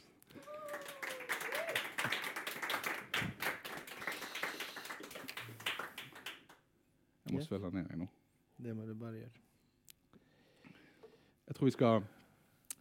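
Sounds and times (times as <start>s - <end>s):
applause: 0.0s - 6.6s
speech: 7.3s - 9.4s, 11.6s - 12.2s.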